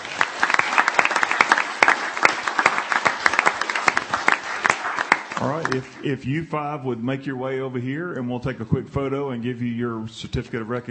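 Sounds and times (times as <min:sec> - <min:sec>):
audience applause: 0:00.0 - 0:06.2
speech: 0:05.4 - 0:10.8.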